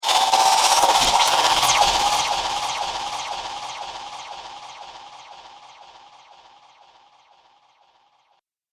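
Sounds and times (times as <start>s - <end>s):
sci-fi laser machinery: 0.0s - 6.2s.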